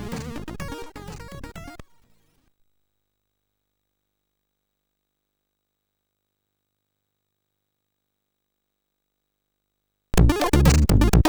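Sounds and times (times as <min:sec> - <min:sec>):
hip-jazz chiptune music on MOS6581R4 chip: 0:00.0 - 0:01.8, 0:10.2 - 0:11.2.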